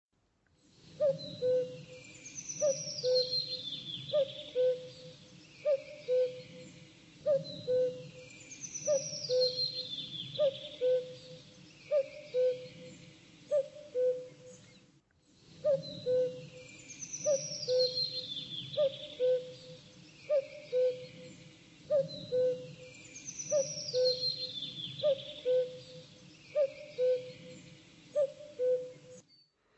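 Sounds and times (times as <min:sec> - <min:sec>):
bird double hoot: 0:01.0 - 0:02.0, 0:02.6 - 0:05.1, 0:05.7 - 0:06.6, 0:07.2 - 0:08.2, 0:08.8 - 0:12.9, 0:15.6 - 0:16.6, 0:17.2 - 0:21.3, 0:21.9 - 0:22.9, 0:23.5 - 0:26.0, 0:26.6 - 0:27.5, 0:28.2 - 0:29.0.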